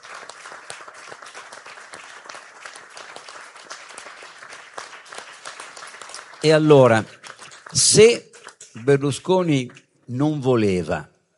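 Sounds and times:
audience applause: 0.0s - 8.6s
speech: 6.4s - 11.1s.

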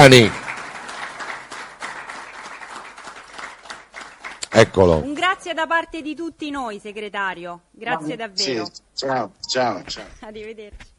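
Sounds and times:
speech: 0.0s - 0.4s, 4.6s - 10.9s
audience applause: 0.0s - 4.9s.

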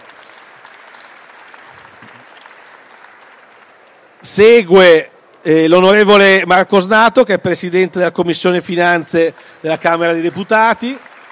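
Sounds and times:
audience applause: 0.0s - 5.4s, 8.7s - 11.2s
speech: 4.2s - 11.1s.

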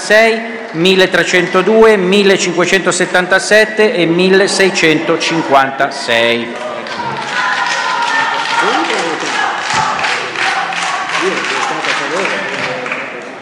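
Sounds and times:
speech: 0.1s - 7.0s
applause in the Senate chamber: 6.5s - 13.4s.

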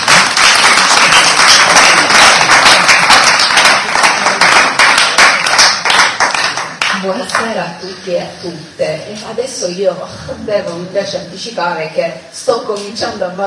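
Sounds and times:
audience applause: 0.0s - 7.0s
speech: 7.6s - 13.4s.

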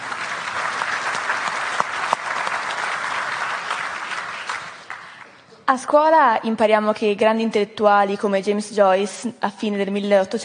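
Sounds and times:
audience applause: 0.0s - 5.4s
speech: 5.7s - 10.4s.

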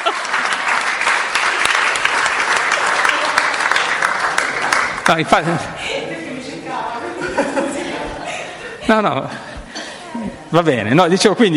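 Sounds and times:
laughter: 0.0s - 0.6s, 5.1s - 10.4s
audience applause: 0.0s - 5.6s
speech: 5.1s - 5.8s, 8.9s - 9.5s, 10.2s - 11.5s.

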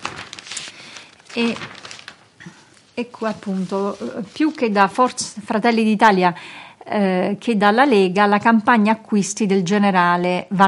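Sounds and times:
La Stampa newspaper pages rustling as they are turned: 0.0s - 5.3s
speech: 1.3s - 1.8s, 2.4s - 10.6s.

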